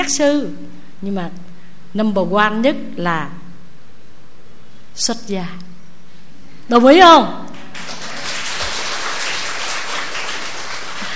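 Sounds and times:
speech: 0.0 - 3.4, 5.0 - 5.7, 6.7 - 8.0
audience applause during a Buddhist monk's talk: 7.6 - 11.1.

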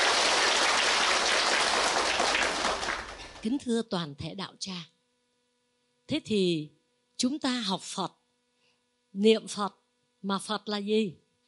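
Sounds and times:
audience applause: 0.0 - 3.4
speech: 3.4 - 5.0, 6.1 - 8.2, 9.2 - 11.2.

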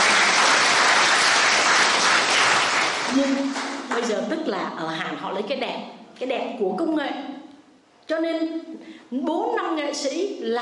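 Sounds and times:
applause: 0.0 - 4.2
speech: 4.1 - 7.3, 8.1 - 10.6.

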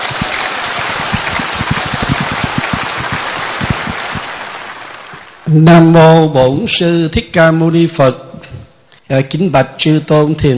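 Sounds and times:
big round of applause: 0.0 - 5.6
speech: 5.5 - 8.2, 9.1 - 10.5.

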